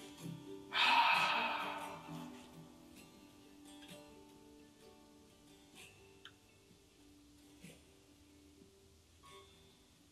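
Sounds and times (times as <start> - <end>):
person imitating a long outward breath, the breath of life: 0.7 - 2.6.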